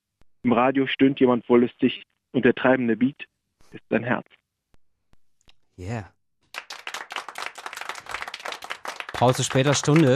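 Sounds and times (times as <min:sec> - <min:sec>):
speech: 0:00.4 - 0:04.4, 0:05.8 - 0:06.2, 0:09.2 - 0:10.1
small round of applause at a late-night reading event: 0:06.5 - 0:10.1.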